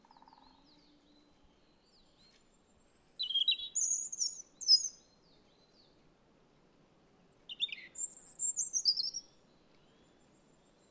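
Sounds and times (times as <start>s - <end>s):
robin singing: 3.2s - 5.0s, 7.5s - 9.3s.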